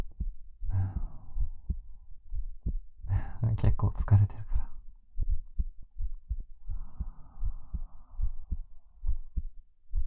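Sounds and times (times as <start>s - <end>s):
fast heartbeat: 0.0s - 3.3s, 4.6s - 10.0s
speech: 3.4s - 4.5s.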